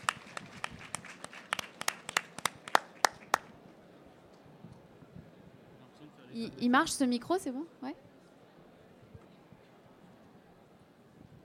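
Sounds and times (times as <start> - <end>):
audience clapping: 0.0 - 3.6
speech: 6.4 - 8.1.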